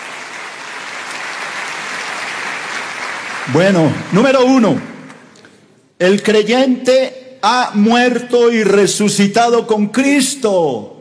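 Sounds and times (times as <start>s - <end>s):
audience applause: 0.0s - 5.0s
speech: 3.5s - 4.9s, 6.0s - 10.9s.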